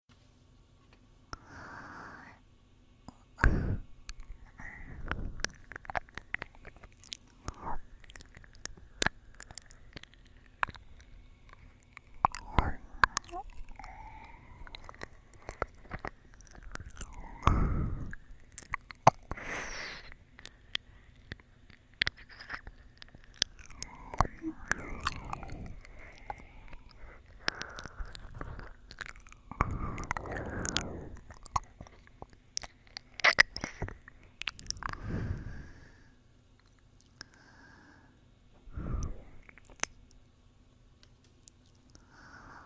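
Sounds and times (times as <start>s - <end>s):
gentle soothing ear licking: 3.4s - 35.9s.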